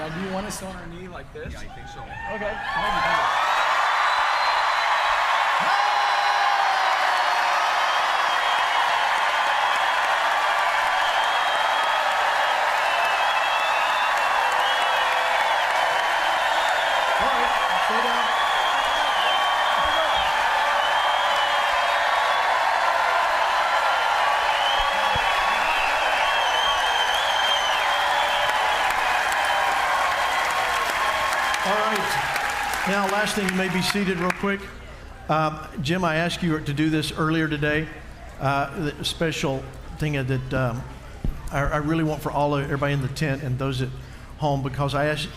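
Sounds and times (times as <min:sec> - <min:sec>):
large crowd cheering and applauding: 0:00.0 - 0:00.8, 0:02.2 - 0:34.6
speech: 0:00.1 - 0:03.5, 0:33.2 - 0:45.3.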